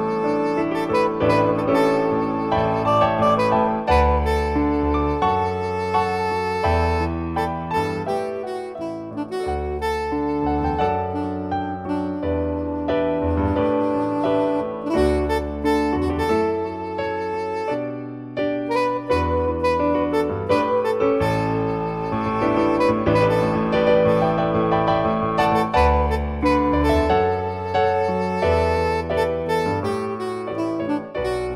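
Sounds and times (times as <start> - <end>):
jazz piano: 0.0 - 31.5.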